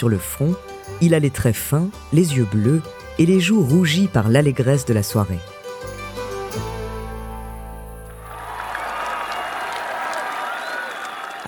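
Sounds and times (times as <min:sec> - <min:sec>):
speech: 0:00.0 - 0:05.6
sustained musical chord: 0:05.7 - 0:09.3
crowd applauding and cheering a king at a royal feast: 0:08.1 - 0:11.4.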